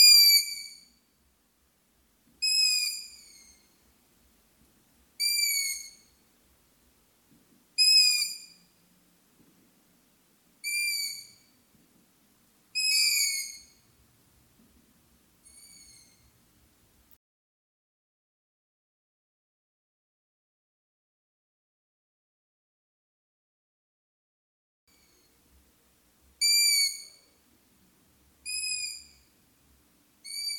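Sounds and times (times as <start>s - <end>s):
long-eared owls calling: 0.0s - 0.8s, 2.4s - 3.7s, 5.2s - 6.2s, 7.8s - 8.6s, 10.6s - 11.6s, 12.8s - 13.9s, 15.5s - 16.3s, 26.4s - 27.2s, 28.4s - 29.3s, 30.2s - 30.5s.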